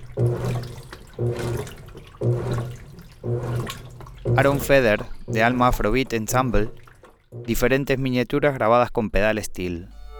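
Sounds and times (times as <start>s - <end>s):
washing machine recorded in Nicaragua: 0.0s - 8.2s
speech: 1.2s - 1.7s, 4.4s - 6.8s, 7.5s - 10.0s.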